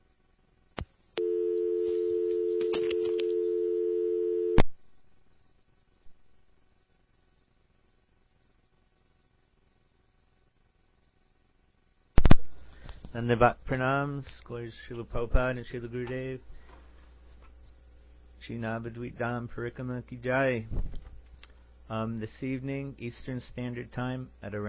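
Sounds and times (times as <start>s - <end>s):
telephone busy tone after a disconnected call: 1.2s - 4.6s
speech: 13.2s - 16.6s, 18.4s - 21.0s, 21.9s - 24.6s.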